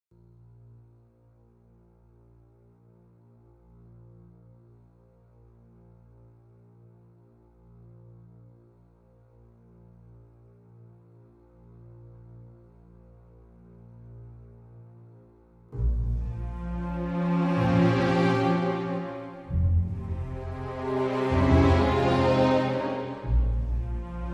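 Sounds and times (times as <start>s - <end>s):
string instruments: 7.3s - 24.3s.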